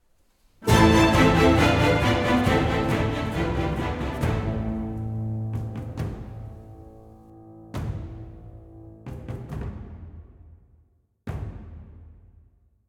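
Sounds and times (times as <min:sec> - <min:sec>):
battle music: 0:00.6 - 0:07.2.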